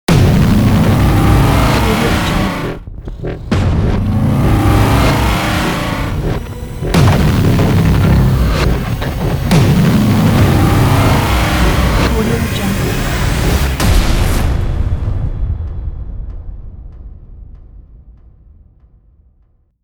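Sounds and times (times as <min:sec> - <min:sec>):
cinematic logo ident sting: 0:00.1 - 0:15.2.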